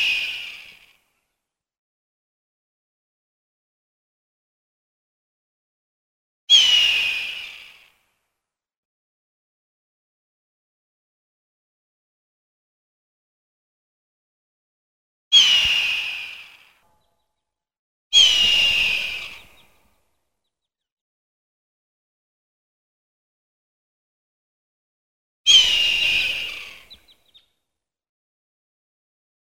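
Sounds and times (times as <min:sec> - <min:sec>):
hawk giving a raspy drawn-out scream: 0:06.5 - 0:07.6, 0:15.3 - 0:16.7, 0:18.2 - 0:19.7, 0:25.5 - 0:27.1.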